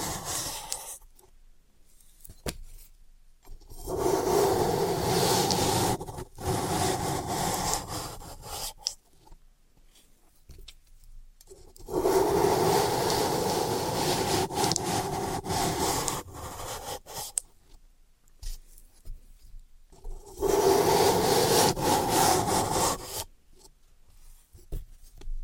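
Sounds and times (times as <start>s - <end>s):
floral foam being cut and crushed: 0.0s - 0.8s, 3.7s - 8.8s, 11.7s - 17.4s, 20.0s - 23.3s.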